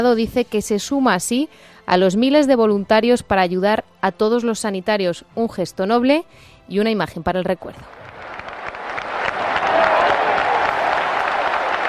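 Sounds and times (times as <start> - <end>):
speech: 0.0 - 8.0
crowd applause: 7.9 - 11.8.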